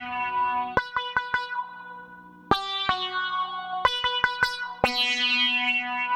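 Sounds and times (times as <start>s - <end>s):
sitar: 0.0s - 6.1s.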